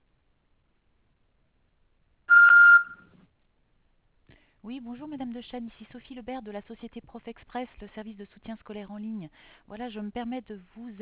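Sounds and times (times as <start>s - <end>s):
voicemail beep tone: 2.3s - 3.1s
speech: 4.6s - 11.0s.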